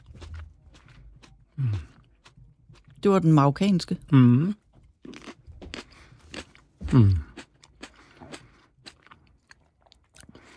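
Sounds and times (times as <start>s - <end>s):
crisp crunchy chewing while tasting food: 0.0s - 3.0s, 4.8s - 10.5s
speech: 3.0s - 4.6s, 6.9s - 7.3s.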